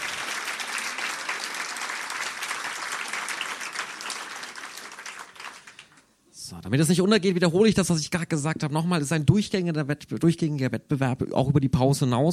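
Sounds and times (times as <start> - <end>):
audience applause: 0.0 - 6.1
speech: 6.5 - 12.3.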